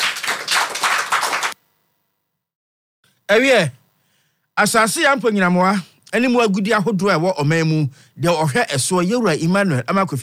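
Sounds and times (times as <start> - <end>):
audience clapping: 0.0 - 1.6
speech: 3.3 - 3.8, 4.6 - 10.2.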